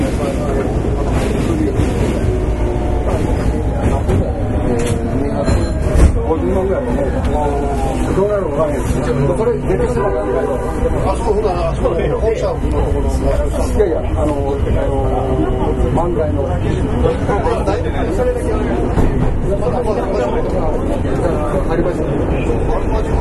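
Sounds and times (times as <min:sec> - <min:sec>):
Kita-Osaka Kyuko 9000 series subway train running rumble: 0:00.0 - 0:23.1
murmur of conversation inside a Midosuji Line subway train: 0:00.0 - 0:23.1.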